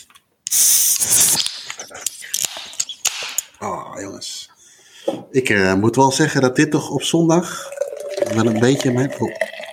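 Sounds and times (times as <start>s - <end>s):
can of Guinness cracking open with hiss: 0.0s - 3.5s
speech: 3.6s - 4.3s, 5.0s - 9.4s.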